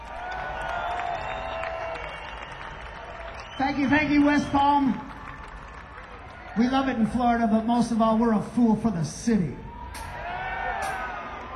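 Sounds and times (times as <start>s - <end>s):
concert crowd applause: 0.0s - 8.0s, 9.7s - 11.5s
speech: 3.6s - 5.1s, 6.6s - 9.6s.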